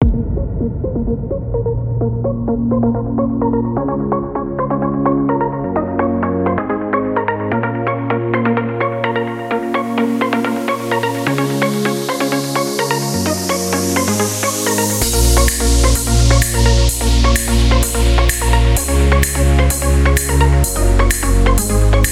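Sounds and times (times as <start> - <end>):
big EDM music: 0.0 - 22.1.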